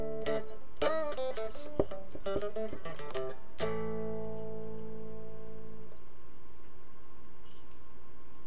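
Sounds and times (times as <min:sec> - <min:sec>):
guitar: 0:00.0 - 0:06.2.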